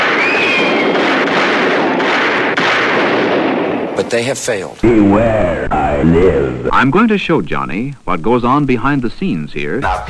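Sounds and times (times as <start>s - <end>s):
dense barrage of rapid gunfire: 0.0s - 4.3s
speech: 4.1s - 10.0s.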